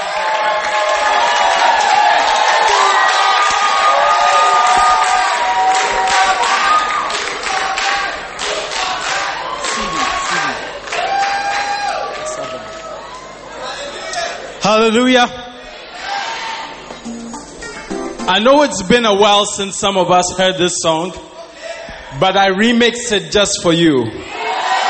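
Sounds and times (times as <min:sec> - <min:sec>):
gospel concert audience cheering and whooping: 0:00.0 - 0:13.5, 0:15.9 - 0:16.8, 0:24.3 - 0:24.8
speech: 0:14.8 - 0:15.4, 0:18.3 - 0:21.3, 0:22.1 - 0:24.4.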